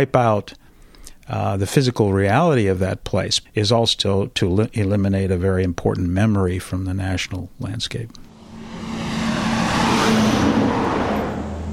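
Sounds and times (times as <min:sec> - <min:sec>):
speech: 0:00.0 - 0:00.7, 0:01.3 - 0:08.3
coal truck roaring past: 0:08.2 - 0:11.7.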